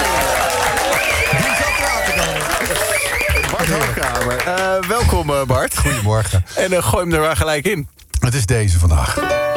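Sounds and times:
studio audience applause at a morning show: 0.0 - 5.0
speech: 4.2 - 9.5.

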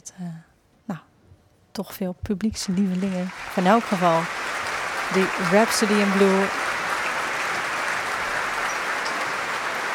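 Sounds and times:
speech: 0.0 - 1.0, 1.8 - 6.7
concert hall audience applause: 2.7 - 9.9.

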